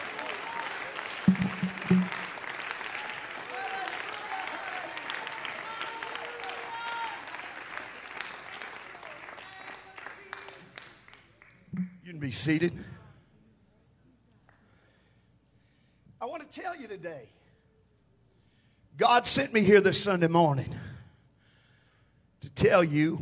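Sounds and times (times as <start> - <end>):
audience clapping: 0.0 - 11.9
speech: 12.3 - 12.9, 17.0 - 17.4, 19.1 - 20.9, 22.6 - 23.2.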